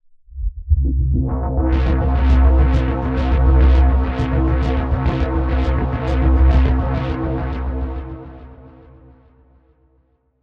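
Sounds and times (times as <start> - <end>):
dark ambient atmosphere: 1.7 - 9.4.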